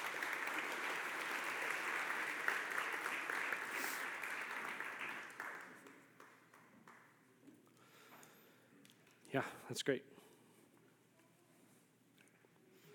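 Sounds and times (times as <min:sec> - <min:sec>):
audience applause: 0:00.0 - 0:07.0
speech: 0:09.3 - 0:10.1.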